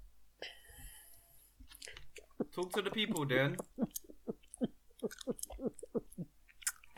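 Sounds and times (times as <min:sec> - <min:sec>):
person gulping down kombucha: 0:02.2 - 0:06.8
speech: 0:02.6 - 0:03.9.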